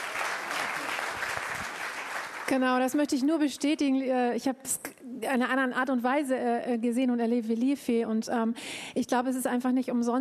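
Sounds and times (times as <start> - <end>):
audience clapping: 0.0 - 3.1
speech: 2.5 - 10.1.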